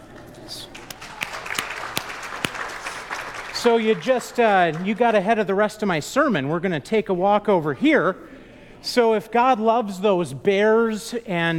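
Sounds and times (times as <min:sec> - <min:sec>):
audience clapping: 0:00.0 - 0:05.4
murmur of noise: 0:00.0 - 0:11.5
speech: 0:00.4 - 0:00.8, 0:03.6 - 0:11.5.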